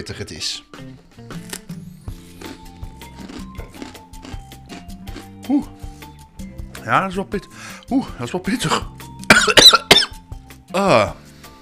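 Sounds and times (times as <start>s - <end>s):
speech: 0.0s - 1.4s, 5.5s - 5.9s, 6.8s - 9.0s, 10.8s - 11.2s
biting into a cracker with spread: 1.4s - 1.8s, 2.4s - 5.3s.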